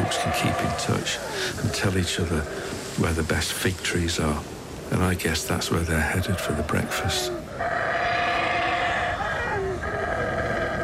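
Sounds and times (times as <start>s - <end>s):
animals howling and roaring across forest canopy: 0.0s - 3.5s, 5.8s - 10.8s
speech: 0.2s - 7.8s.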